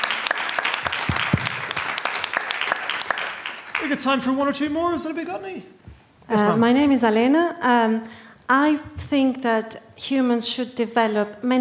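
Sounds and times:
audience applause: 0.0 - 4.6
speech: 3.9 - 11.5.

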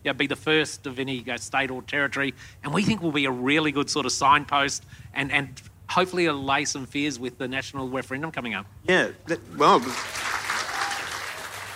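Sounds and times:
speech: 0.0 - 10.3
audience clapping: 9.6 - 11.7.

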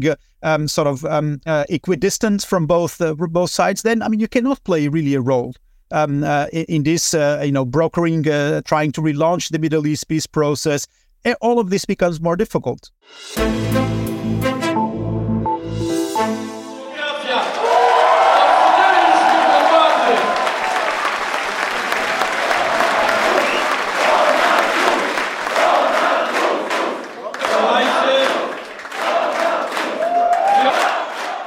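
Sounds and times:
speech: 0.0 - 14.6
burst of music: 13.1 - 17.4
election night crowd cheering and applauding: 16.8 - 31.4.

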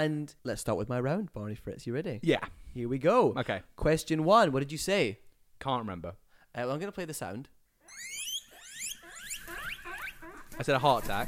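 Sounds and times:
speech: 0.0 - 8.1, 10.6 - 11.2
guinea pig squeaking: 7.9 - 11.2.

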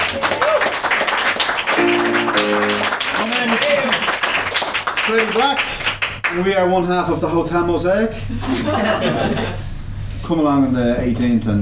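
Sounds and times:
audience applause: 0.0 - 6.3
speech: 5.1 - 5.7, 6.3 - 9.6, 10.2 - 11.6
laughter: 8.3 - 9.6.

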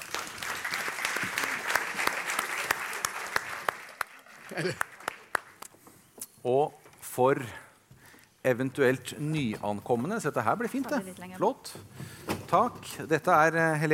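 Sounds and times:
audience applause: 0.0 - 5.6
speech: 4.5 - 4.9, 6.4 - 7.6, 8.4 - 13.9.

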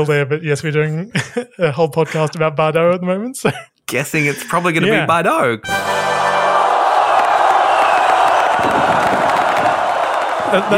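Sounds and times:
speech: 0.0 - 6.1, 10.5 - 10.7
laughter: 1.1 - 2.5, 10.4 - 10.7
crowd cheering and whooping: 5.9 - 10.7
scattered claps: 7.1 - 10.7.

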